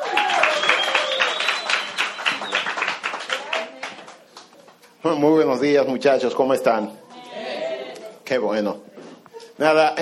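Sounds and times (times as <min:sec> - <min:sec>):
crowd applauding: 0:00.0 - 0:04.5
speech: 0:05.0 - 0:07.0, 0:08.3 - 0:08.9, 0:09.6 - 0:10.0.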